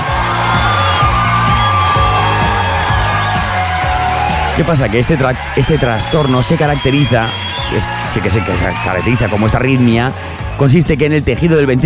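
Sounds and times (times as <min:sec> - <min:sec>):
applause and cheering: 0:00.0 - 0:11.8
speech: 0:04.6 - 0:11.8.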